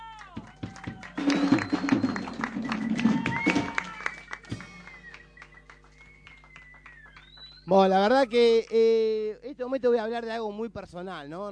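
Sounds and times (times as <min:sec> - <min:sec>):
crowd clapping for a band: 0:00.0 - 0:09.0
cheers and whistles: 0:00.2 - 0:08.5
speech: 0:07.7 - 0:11.5.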